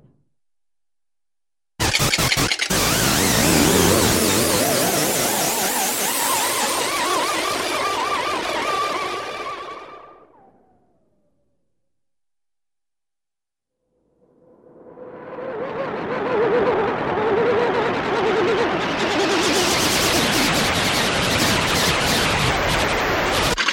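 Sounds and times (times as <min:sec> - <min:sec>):
multi-pitched buzzy scratchy UFO sounds: 0:01.8 - 0:10.0, 0:14.6 - 0:23.6.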